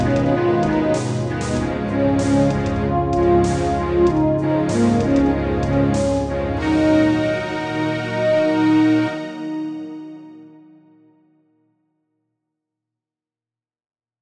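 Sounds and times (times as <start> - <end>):
music beat: 0.0 - 10.3.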